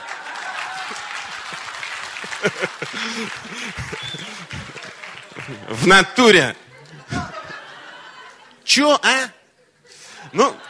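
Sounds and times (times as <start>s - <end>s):
audience applause: 0.0s - 6.2s
laughter: 0.1s - 8.7s, 9.5s - 10.6s
speech: 2.4s - 4.6s, 5.5s - 6.6s, 8.8s - 9.4s, 10.3s - 10.6s.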